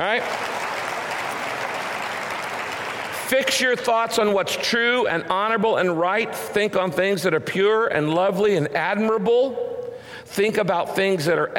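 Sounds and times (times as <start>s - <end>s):
speech: 0.0s - 0.5s, 3.3s - 11.5s
audience applause: 0.0s - 3.8s.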